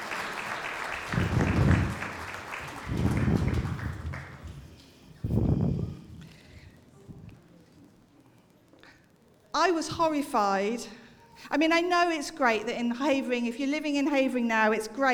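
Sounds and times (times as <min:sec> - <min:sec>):
audience applause: 0:00.0 - 0:05.0
speech: 0:09.7 - 0:15.1.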